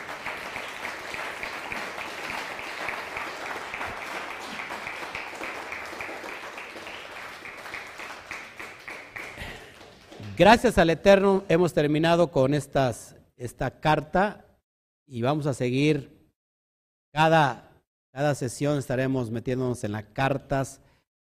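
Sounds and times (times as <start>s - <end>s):
crowd applause: 0.0s - 10.6s
speech: 10.4s - 14.4s, 15.1s - 16.2s, 17.2s - 20.8s.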